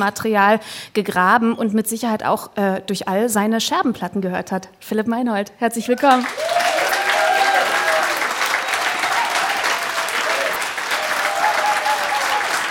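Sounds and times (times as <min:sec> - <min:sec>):
speech: 0:00.0 - 0:06.4
audience applause: 0:06.1 - 0:12.6.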